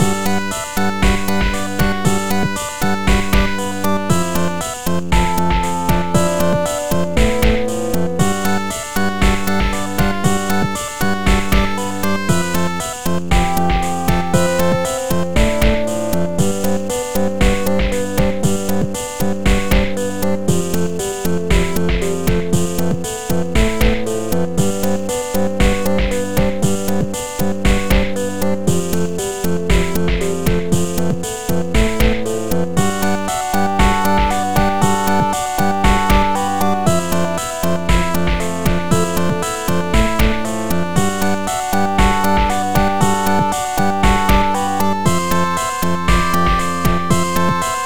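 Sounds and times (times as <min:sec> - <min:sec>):
internal percussion: 0:00.0 - 0:47.8.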